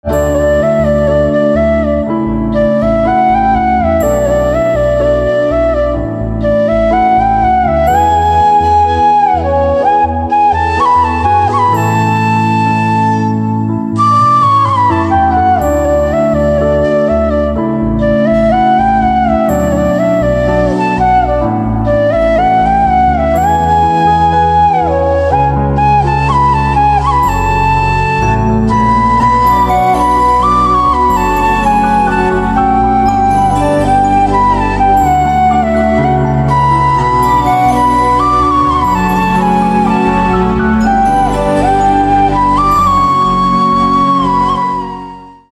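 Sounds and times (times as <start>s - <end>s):
flute: 0.0s - 45.5s.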